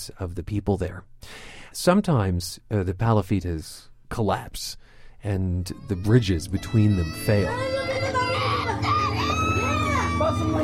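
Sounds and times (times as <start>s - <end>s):
speech: 0.0s - 8.1s
boy crying in fear of the water: 5.4s - 10.6s.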